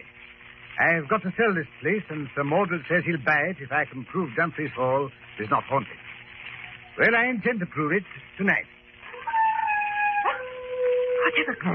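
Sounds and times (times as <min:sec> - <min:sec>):
speech: 0:00.8 - 0:06.0, 0:07.0 - 0:08.8, 0:11.3 - 0:11.7
wild dogs baying and howling on a moor: 0:09.1 - 0:11.7.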